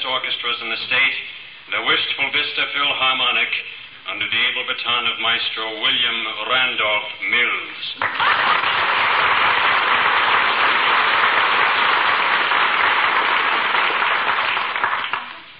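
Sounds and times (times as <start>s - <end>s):
speech: 0.0s - 8.8s
applause: 8.0s - 15.5s.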